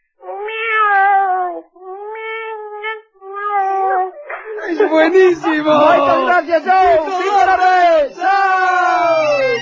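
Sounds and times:
person imitating cat meows: 0.2 - 4.7, 5.7 - 6.4
laughter: 4.3 - 8.3
speech: 4.8 - 9.4.

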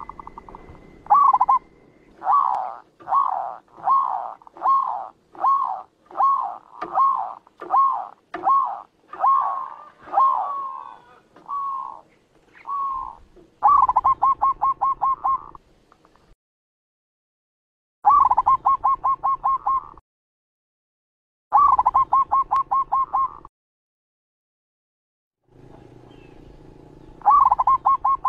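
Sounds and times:
zebra dove cooing song: 0.0 - 15.6, 18.1 - 20.0, 21.6 - 23.5, 27.2 - 28.2.

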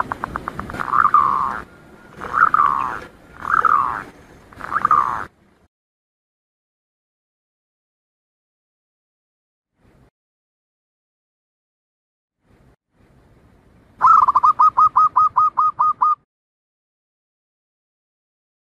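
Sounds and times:
Zebra dove staccato cooing song: 0.0 - 5.3, 14.0 - 16.2.

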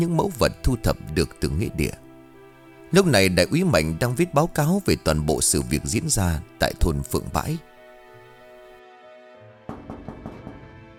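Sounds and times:
speech: 0.0 - 2.0, 2.9 - 7.7
knocking on a room door: 9.6 - 10.9.

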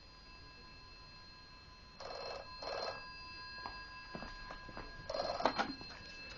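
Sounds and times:
telephone ringing: 1.9 - 6.3.

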